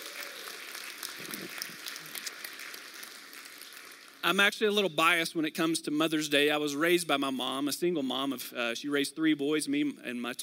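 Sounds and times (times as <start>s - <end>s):
audience applause for the moms at a Mother's Day gathering: 0.0s - 4.2s
speech: 4.2s - 10.4s.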